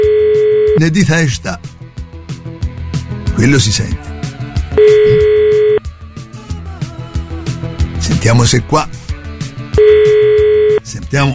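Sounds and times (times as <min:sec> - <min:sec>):
telephone line tone: 0:00.0 - 0:00.8, 0:04.8 - 0:05.8, 0:09.8 - 0:10.8
speech: 0:00.8 - 0:01.7, 0:03.4 - 0:04.0, 0:04.8 - 0:05.4, 0:08.2 - 0:09.0, 0:11.1 - 0:11.3.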